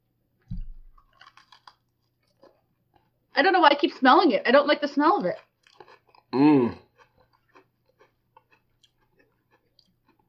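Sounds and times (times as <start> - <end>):
soft thump: 0.5 - 0.9
crunchy chewing of Mud Pie Blizzard ice cream with chips: 0.6 - 3.2, 5.2 - 10.2
speech: 3.4 - 5.5, 6.3 - 6.8.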